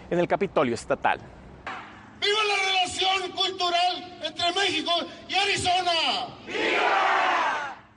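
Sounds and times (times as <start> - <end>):
speech: 0.1 - 1.4, 3.3 - 7.4
crowd shouting the Mexican independence cry: 6.5 - 7.9.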